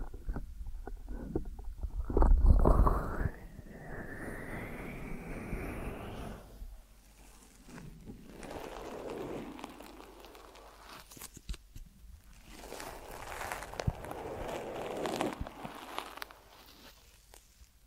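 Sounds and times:
deep ear massage rubbing and pressing: 1.1 - 17.8.

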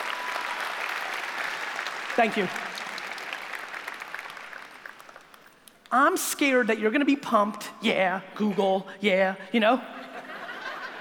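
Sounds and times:
audience applause: 0.0 - 5.7
speech: 2.2 - 2.7, 5.9 - 10.0
laughter: 9.9 - 10.9.

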